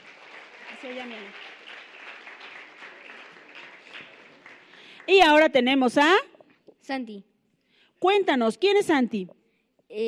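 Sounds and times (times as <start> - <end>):
audience applause: 0.0 - 5.4
speech: 0.8 - 1.5, 5.1 - 6.3, 6.9 - 7.3, 8.0 - 10.0.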